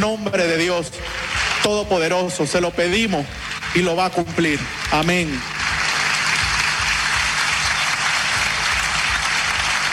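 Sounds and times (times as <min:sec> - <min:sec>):
speech: 0:00.0 - 0:05.6
standing ovation applause from parliamentarians: 0:01.0 - 0:02.0, 0:03.0 - 0:09.9.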